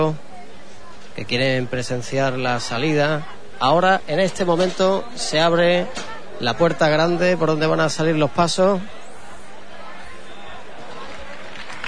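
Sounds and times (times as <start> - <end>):
speech: 0.0 - 0.2, 1.2 - 9.0
crowd of La Plata applauding as procession exits: 10.3 - 11.8.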